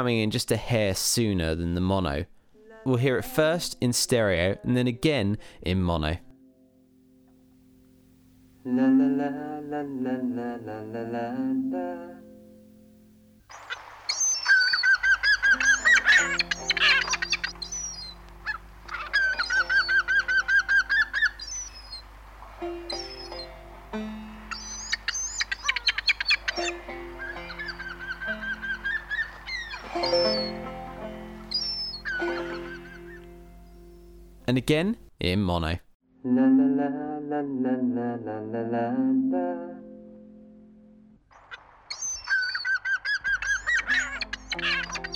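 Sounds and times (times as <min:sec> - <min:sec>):
speech: 0:00.0 - 0:06.2, 0:08.6 - 0:12.2, 0:34.7 - 0:39.8
seagull sound effects: 0:13.5 - 0:22.1, 0:22.8 - 0:23.6, 0:24.5 - 0:34.0, 0:41.4 - 0:45.1.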